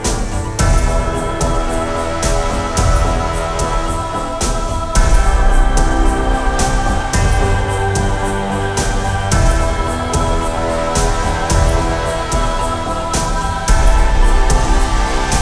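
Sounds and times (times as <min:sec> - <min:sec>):
dark bells: 0:00.0 - 0:15.4.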